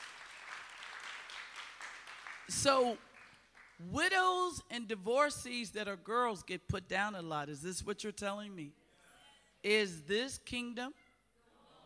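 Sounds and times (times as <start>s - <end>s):
audience clapping: 0.0s - 3.8s
speech: 2.5s - 3.1s, 3.8s - 8.8s, 9.6s - 11.0s.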